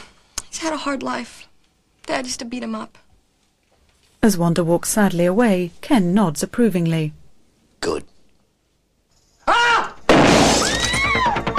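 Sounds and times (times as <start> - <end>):
speech: 0.6 - 1.5, 2.1 - 3.0, 4.2 - 7.2, 7.8 - 8.1
shotgun fired at a counter screen in a bank: 10.1 - 10.8
counter screen glass shattering: 10.1 - 11.0.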